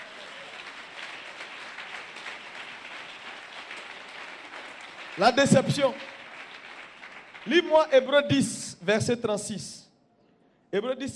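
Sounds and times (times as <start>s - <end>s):
church congregation applauding acclaiming Jesus: 0.0s - 8.9s
speech: 5.2s - 6.2s, 7.4s - 9.8s, 10.7s - 11.1s.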